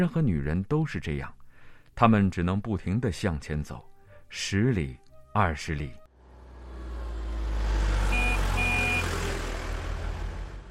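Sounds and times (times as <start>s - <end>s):
speech: 0.0s - 1.4s, 2.0s - 6.0s
car whooshing past: 6.2s - 10.6s.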